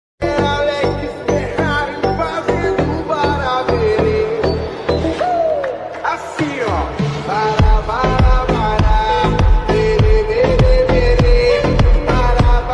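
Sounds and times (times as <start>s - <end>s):
remix song: 0.2s - 12.7s.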